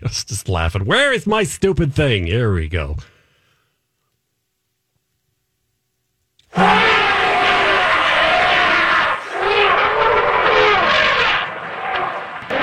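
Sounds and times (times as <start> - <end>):
speech: 0.0 - 3.1
elephant call: 6.5 - 12.6.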